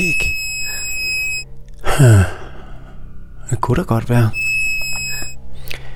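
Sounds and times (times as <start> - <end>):
beep from a bug-detector device: 0.0 - 1.4, 4.3 - 5.4
speech: 2.0 - 2.4, 3.5 - 4.4.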